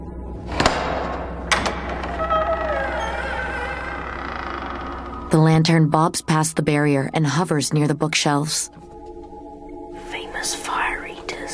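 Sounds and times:
double doors shoved open: 0.4s - 5.3s
hinges creaking: 0.4s - 5.6s
metallic clack of a gate latch: 0.5s - 3.2s
speech: 5.3s - 8.9s, 10.4s - 10.7s.

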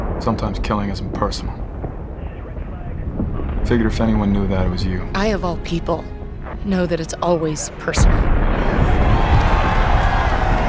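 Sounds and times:
speech: 0.2s - 1.7s, 3.7s - 9.1s
group of people cheering at an avalanche: 8.5s - 10.6s.

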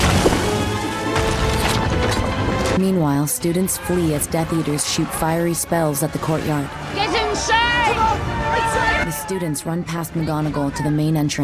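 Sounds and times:
giants smashing stone soldiers in a battle: 0.0s - 2.3s
speech: 2.8s - 7.6s, 8.2s - 11.4s.

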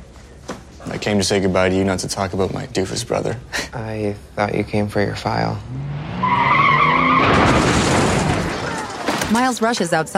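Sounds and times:
speech: 0.9s - 6.0s, 9.3s - 10.1s
car tires screeching in a skid: 5.6s - 9.0s
car crashing into a bus stop: 7.0s - 9.4s.

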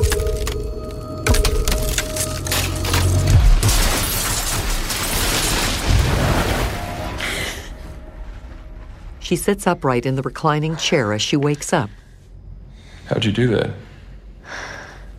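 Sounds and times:
glass wall cracking and shattering: 0.0s - 7.0s
speech: 9.3s - 12.0s, 13.1s - 13.9s.

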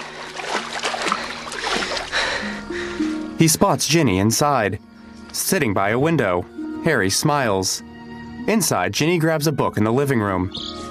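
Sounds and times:
footsteps sloshing through ankle-high water: 0.0s - 2.6s
speech: 3.4s - 7.9s, 8.5s - 10.8s.

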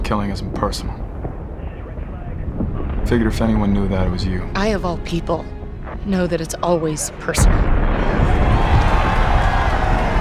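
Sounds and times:
speech: 0.1s - 1.3s, 3.1s - 8.4s
group of people cheering at an avalanche: 8.1s - 10.1s.

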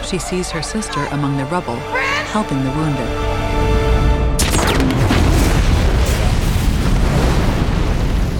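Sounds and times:
speech: 0.1s - 3.8s
bomb exploding overhead amid rubble: 4.4s - 8.3s.

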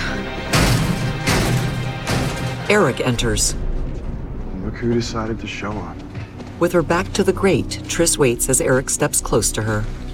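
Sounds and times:
fire extinguisher bashed against a door: 0.5s - 2.7s
speech: 2.7s - 3.6s, 4.8s - 6.0s, 6.6s - 10.0s.

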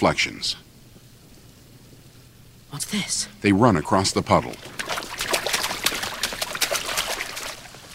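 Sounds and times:
speech: 0.0s - 0.7s, 2.7s - 4.9s
water running from overflowing sink faucets: 4.2s - 7.9s.

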